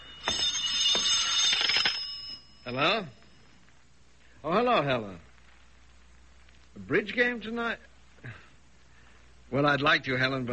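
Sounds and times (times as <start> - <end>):
telephone ringing with a harsh rattling metallic bell: 0.0 - 3.4
speech: 2.7 - 3.2, 4.4 - 5.3, 6.8 - 8.4, 9.5 - 10.5.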